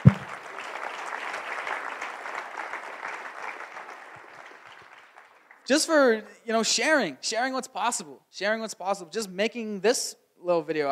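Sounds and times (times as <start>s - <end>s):
audience applause: 0.0s - 5.6s
speech: 5.7s - 10.9s.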